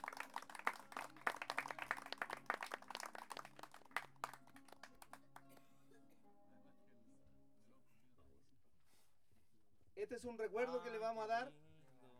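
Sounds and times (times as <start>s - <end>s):
audience applause: 0.0s - 5.3s
speech: 10.1s - 11.6s.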